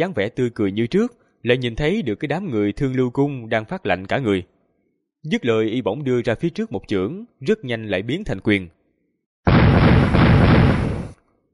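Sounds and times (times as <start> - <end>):
speech: 0.0 - 4.5, 5.2 - 8.8
explosive burst of command tokens shattering into powder: 9.5 - 11.2.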